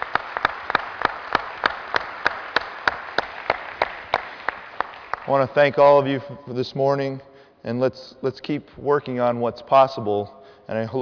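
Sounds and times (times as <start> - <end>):
round of applause: 0.0 - 5.6
speech: 5.3 - 11.0.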